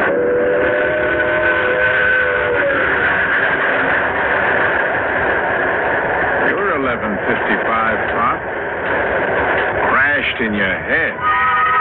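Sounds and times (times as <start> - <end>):
train whistle: 0.0 - 3.4, 11.1 - 11.7
train arriving: 0.0 - 11.7.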